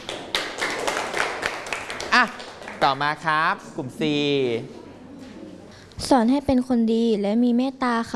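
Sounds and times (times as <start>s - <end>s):
classmates in a school class clapping: 0.0s - 3.3s
speech: 2.2s - 4.8s, 6.0s - 8.1s.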